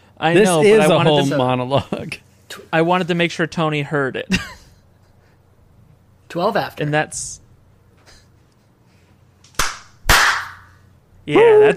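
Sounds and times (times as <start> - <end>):
speech: 0.2 - 4.6, 6.3 - 7.4, 11.2 - 11.7
hand clapping: 9.5 - 10.8.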